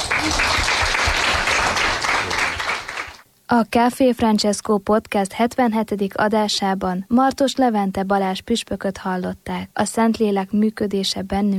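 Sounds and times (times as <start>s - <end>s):
audience applause: 0.0s - 3.2s
speech: 3.5s - 11.5s.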